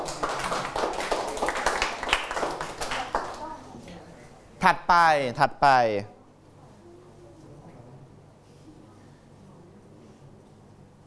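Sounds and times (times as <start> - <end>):
classroom applause: 0.0 - 3.7
speech: 4.6 - 6.2.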